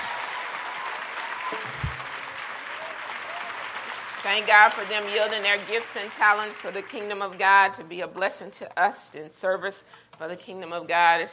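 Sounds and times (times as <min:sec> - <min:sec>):
audience applause: 0:00.0 - 0:07.1
speech: 0:01.5 - 0:01.9, 0:04.2 - 0:11.3.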